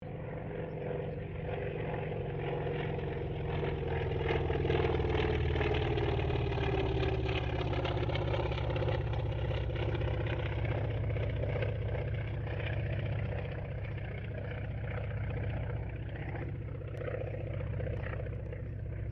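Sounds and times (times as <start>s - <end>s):
distant CAC Wirraway aircraft passing: 0.0s - 19.1s.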